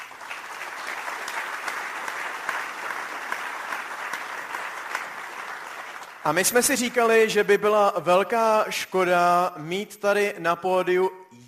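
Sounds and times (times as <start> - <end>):
audience applause: 0.0 - 6.4
speech: 6.2 - 11.4.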